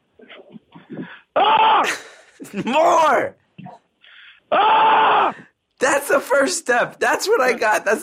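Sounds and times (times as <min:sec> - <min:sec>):
person screaming loudly: 0:01.4 - 0:02.0, 0:04.5 - 0:05.4
speech: 0:01.4 - 0:03.4, 0:04.5 - 0:08.0.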